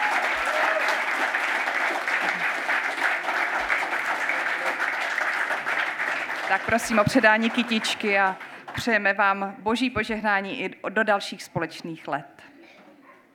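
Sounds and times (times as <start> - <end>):
audience applause: 0.0 - 8.8
speech: 6.5 - 12.5.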